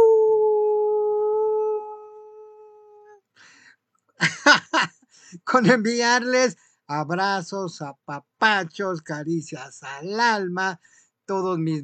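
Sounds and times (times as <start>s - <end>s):
person imitating a howl with yip-like bursts: 0.0s - 3.2s
laughter: 4.2s - 4.9s
speech: 5.4s - 11.8s.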